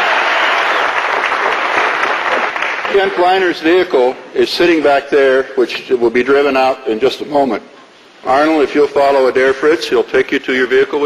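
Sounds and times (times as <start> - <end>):
applause welcoming Arnold Schwarzenegger at a Hummer key-handover ceremony: 0.0 - 3.4
speech: 3.0 - 11.0.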